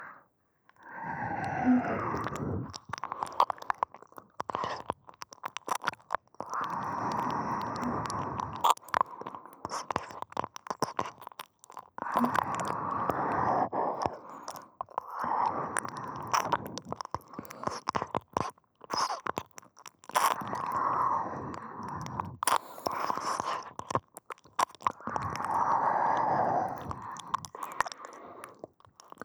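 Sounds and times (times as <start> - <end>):
ear licking in right ear: 0.8 - 13.4, 13.9 - 20.8, 21.7 - 29.2
person whispering in right ear: 12.1 - 12.6.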